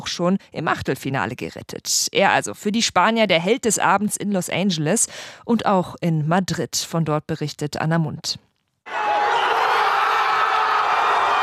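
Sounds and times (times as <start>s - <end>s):
speech: 0.0s - 9.0s
football fans cheering in a public square: 8.9s - 11.4s.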